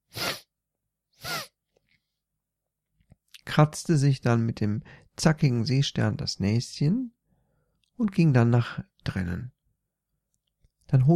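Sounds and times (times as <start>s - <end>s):
person sniffing: 0.0s - 0.5s, 1.2s - 1.6s
speech: 3.6s - 7.2s, 8.0s - 9.6s, 10.9s - 11.1s.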